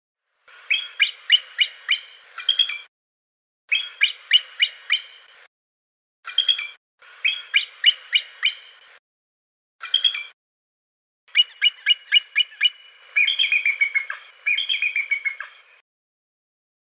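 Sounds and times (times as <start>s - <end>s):
bald eagle calling: 0.6s - 2.9s, 3.7s - 5.2s, 7.2s - 8.8s, 11.3s - 15.6s.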